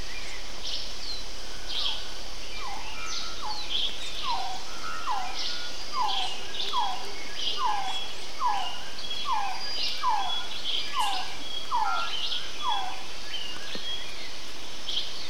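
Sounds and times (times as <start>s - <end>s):
oropendola calling: 0.0s - 15.2s
resplendent quetzal calling: 1.7s - 13.6s
bellbirds calling: 2.6s - 14.0s
white throated capuchin calling: 4.2s - 13.1s.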